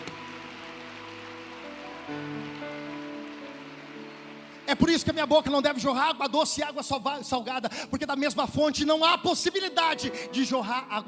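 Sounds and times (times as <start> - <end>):
audience applauding: 0.0 - 6.0
speech: 2.1 - 2.6, 4.7 - 11.0.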